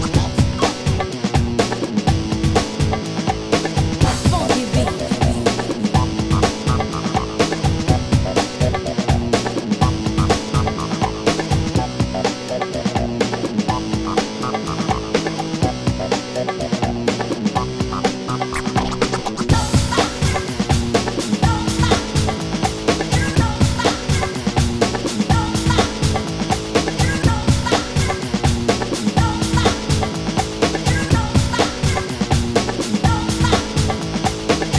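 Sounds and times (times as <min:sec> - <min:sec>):
breakbeat drums: 0:00.0 - 0:34.7.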